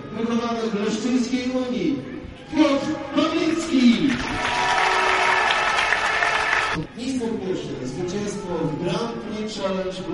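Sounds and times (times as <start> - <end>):
speech: 0.2 - 4.9, 7.0 - 10.1
crowd applause at the Grand Prix Challenge ceremony in Rybnik: 3.9 - 6.8.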